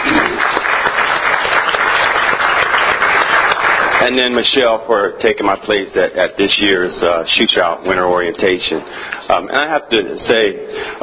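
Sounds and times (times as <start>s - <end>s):
audience applause: 0.0s - 4.4s
speech: 4.0s - 11.0s.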